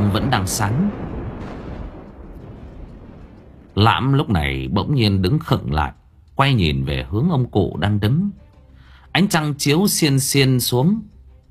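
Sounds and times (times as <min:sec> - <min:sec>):
rumbling thunderclap: 0:00.0 - 0:06.2
speech: 0:00.3 - 0:01.1, 0:03.8 - 0:08.4, 0:09.2 - 0:11.1.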